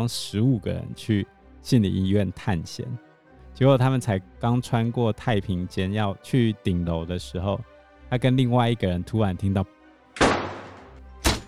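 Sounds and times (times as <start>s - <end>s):
speech: 0.0s - 10.4s
loud door slamming shut: 10.2s - 11.4s.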